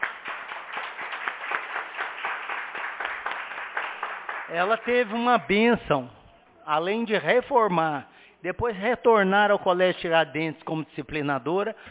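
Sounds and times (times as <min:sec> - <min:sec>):
chamber full of people applauding: 0:00.0 - 0:05.7
speech: 0:04.5 - 0:11.9.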